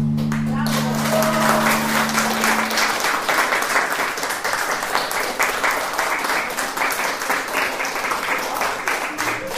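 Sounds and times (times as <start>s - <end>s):
loud applause for performers: 0.2s - 9.5s
final chord of music: 0.3s - 3.5s.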